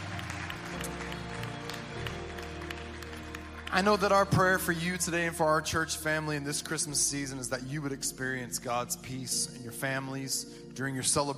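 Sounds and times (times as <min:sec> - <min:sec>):
audience clapping: 0:00.0 - 0:05.4
low sustained musical tone: 0:00.0 - 0:11.3
speech: 0:03.7 - 0:11.3.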